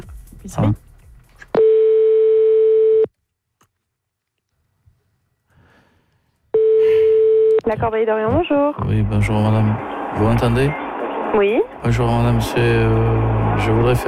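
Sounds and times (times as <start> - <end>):
speech: 0.0 - 0.8, 7.7 - 14.0
telephone ringing tone: 1.6 - 3.1, 6.6 - 7.6.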